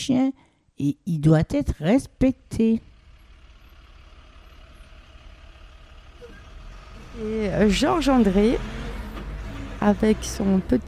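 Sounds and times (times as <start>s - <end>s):
speech: 0.0s - 2.9s, 7.2s - 8.8s, 9.8s - 10.8s
garbage truck passing: 2.4s - 10.8s.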